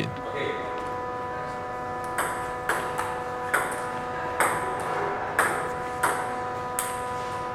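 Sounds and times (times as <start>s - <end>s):
steady tonal humming drone: 0.0s - 7.5s
table tennis ball bouncing on paddles: 2.0s - 7.0s.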